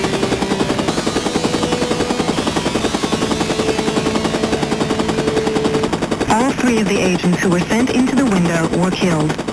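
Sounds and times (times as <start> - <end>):
machine gun fire in a video game: 0.0 - 6.4
speech: 6.4 - 9.4.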